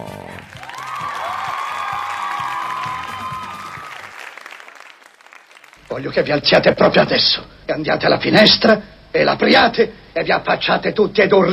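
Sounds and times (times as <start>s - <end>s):
crowd applause: 0.0s - 6.0s
whistle-like cheer: 0.6s - 4.3s
speech: 6.0s - 11.5s.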